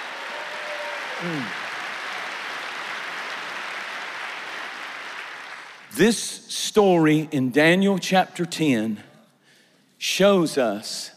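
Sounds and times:
audience clapping: 0:00.0 - 0:06.0
speech: 0:01.2 - 0:01.6, 0:05.9 - 0:09.1, 0:10.0 - 0:11.1.

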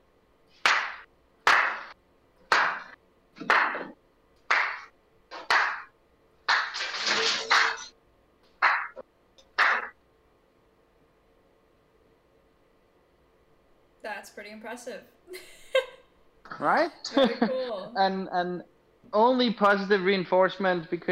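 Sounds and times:
slow hand clapping: 0:00.6 - 0:05.9, 0:06.5 - 0:07.9, 0:08.6 - 0:09.9
speech: 0:14.0 - 0:15.6, 0:16.6 - 0:21.1.

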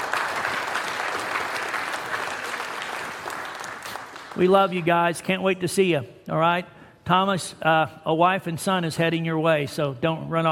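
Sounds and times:
audience applause: 0:00.0 - 0:04.9
speech: 0:04.4 - 0:10.5.

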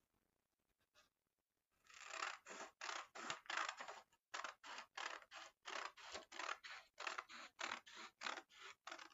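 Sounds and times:
scissors cutting paper strips: 0:01.9 - 0:09.1.

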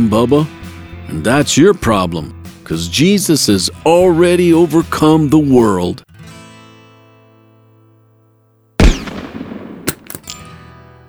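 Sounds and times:
speech: 0:00.0 - 0:06.1
gunshots in a gunfight: 0:08.8 - 0:10.4.

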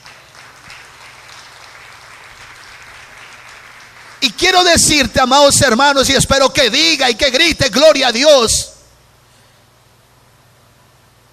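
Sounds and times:
audience applauding in a large room: 0:00.0 - 0:04.7
speech: 0:04.3 - 0:08.7.

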